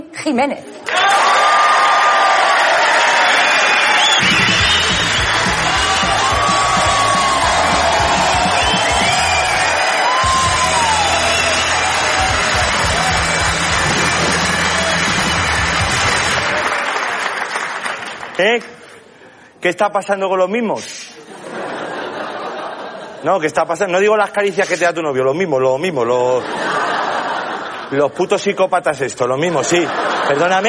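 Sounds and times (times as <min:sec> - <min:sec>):
speech: 0:00.2 - 0:01.3, 0:18.4 - 0:18.7, 0:19.6 - 0:21.0, 0:23.2 - 0:26.6, 0:27.9 - 0:30.6
audience applause: 0:00.8 - 0:19.1
laughter: 0:21.2 - 0:23.5, 0:26.2 - 0:28.3, 0:29.4 - 0:30.6.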